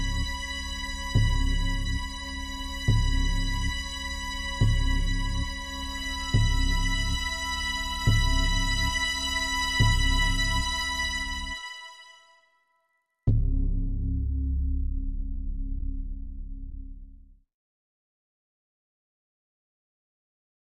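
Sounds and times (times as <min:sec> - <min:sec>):
tension-building music: 0:00.0 - 0:12.0, 0:13.3 - 0:17.4.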